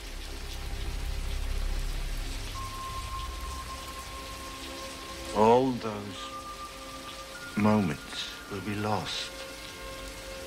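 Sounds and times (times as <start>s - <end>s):
heavy rainstorm: 0.0s - 10.4s
thin high tone: 2.5s - 6.8s
speech: 5.4s - 6.3s, 7.6s - 9.4s.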